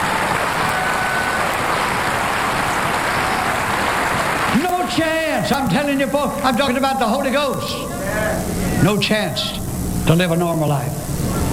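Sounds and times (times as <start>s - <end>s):
audience applause: 0.0s - 5.6s
speech: 4.9s - 11.0s.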